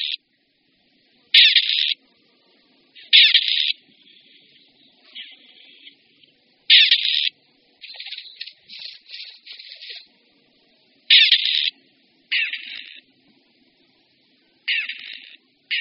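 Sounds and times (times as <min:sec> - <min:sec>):
grey partridge rasping calls: 0:00.0 - 0:00.2, 0:01.3 - 0:02.0, 0:03.0 - 0:06.0, 0:06.7 - 0:10.1, 0:11.1 - 0:13.1, 0:14.6 - 0:15.7.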